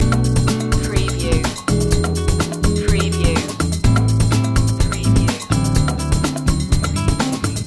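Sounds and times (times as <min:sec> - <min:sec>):
Latin shaker loop: 0:00.0 - 0:07.6.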